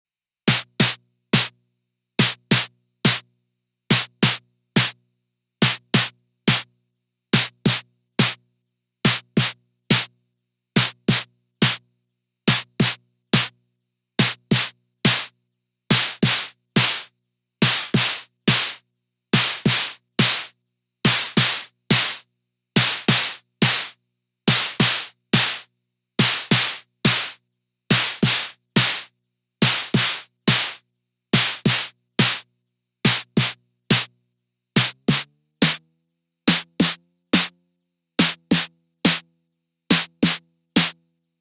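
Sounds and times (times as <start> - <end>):
snare drum: 0.5 - 1.5, 2.2 - 3.2, 5.6 - 6.7, 7.4 - 8.4, 9.1 - 10.1, 10.8 - 11.8, 12.5 - 13.5, 14.2 - 15.3, 15.9 - 18.8, 19.4 - 20.5, 21.1 - 22.2, 22.8 - 25.6, 26.2 - 30.8, 31.4 - 32.4, 33.1 - 34.1, 34.8 - 35.8, 36.5 - 37.6, 38.2 - 39.3, 39.9 - 41.0.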